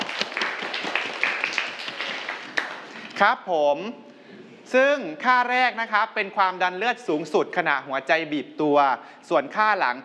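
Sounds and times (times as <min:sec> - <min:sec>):
students applauding: 0:00.0 - 0:03.2
speech: 0:03.2 - 0:10.0.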